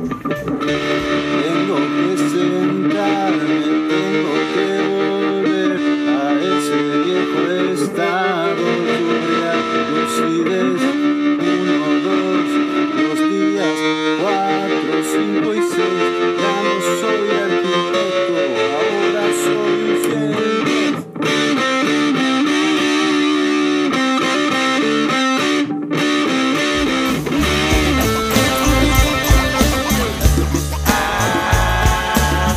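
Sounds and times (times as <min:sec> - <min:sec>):
loud distorted electric guitar chords with tremolo effect: 0:00.0 - 0:32.5.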